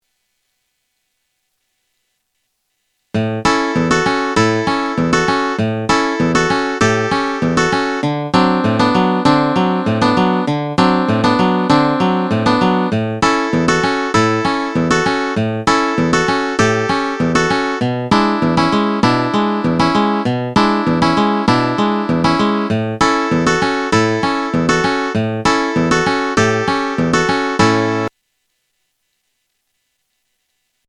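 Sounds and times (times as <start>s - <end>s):
rockabilly rhythm: 3.1s - 28.1s.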